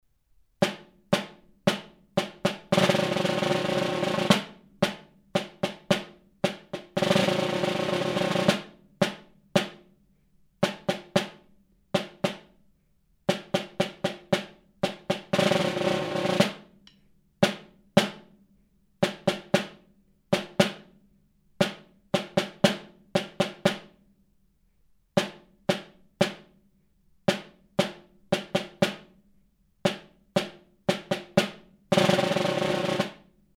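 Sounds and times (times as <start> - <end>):
snare drum: 0.6 - 9.9, 10.6 - 12.6, 13.3 - 18.4, 19.0 - 21.0, 21.6 - 24.0, 25.2 - 26.6, 27.2 - 29.2, 29.8 - 33.3.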